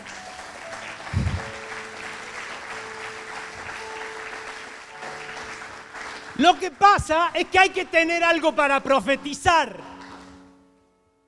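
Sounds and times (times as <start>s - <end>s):
audience applause: 0.0s - 7.1s
speech: 6.4s - 9.9s.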